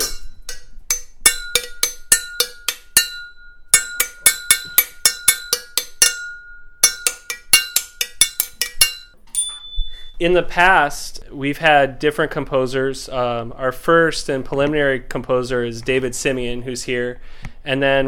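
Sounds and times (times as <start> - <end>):
metal tubes struck like a xylophone: 0.0 - 9.8
speech: 10.2 - 18.0.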